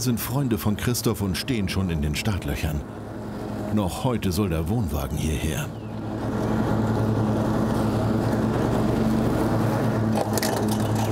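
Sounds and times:
speech: 0:00.0 - 0:03.1, 0:03.7 - 0:06.5
lawn mower engine mowing grass: 0:06.0 - 0:11.0.

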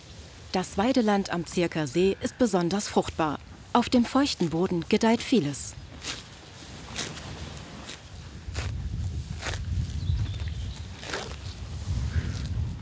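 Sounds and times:
speech: 0:00.5 - 0:06.2
cows tearing off grass while grazing: 0:05.9 - 0:12.6.

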